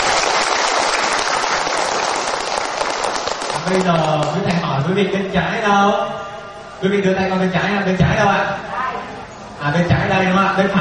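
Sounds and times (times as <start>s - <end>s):
audience clapping hands: 0.0s - 4.5s
speech: 3.7s - 6.2s, 6.8s - 8.7s, 9.6s - 10.7s.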